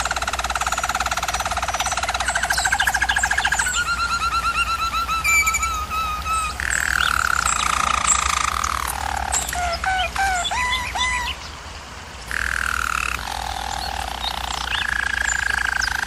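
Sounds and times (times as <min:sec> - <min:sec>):
German Roller canary song: 0:00.0 - 0:16.0.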